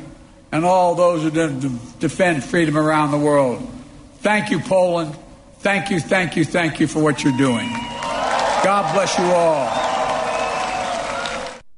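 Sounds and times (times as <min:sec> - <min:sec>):
speech: 0:00.5 - 0:08.0, 0:08.6 - 0:09.8
large outdoor crowd applauding: 0:07.6 - 0:11.6.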